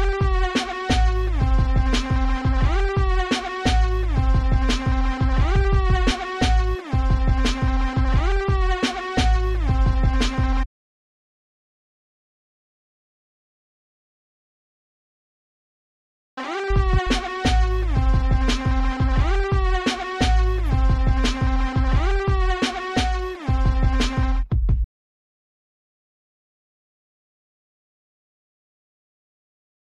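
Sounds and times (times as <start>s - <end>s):
instrumental music: 0.0s - 10.6s, 16.4s - 24.8s.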